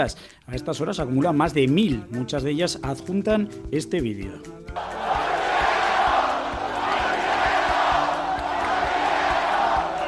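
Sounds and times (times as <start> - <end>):
speech: 0.0 - 5.0
crowd of party supporters chanting a slogan: 4.8 - 10.0.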